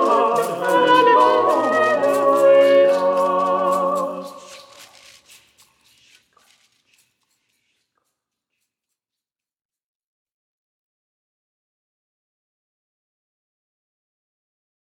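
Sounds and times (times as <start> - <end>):
full ensemble playing: 0.0 - 4.4.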